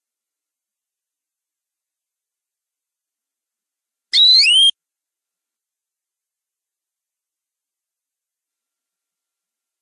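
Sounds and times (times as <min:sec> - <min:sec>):
canary rolling trill song: 0:04.1 - 0:04.7.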